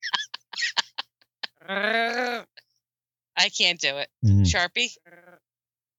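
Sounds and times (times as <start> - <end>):
speech: 1.7 - 2.0, 3.4 - 5.2
person imitating a drowning cat: 4.2 - 4.6.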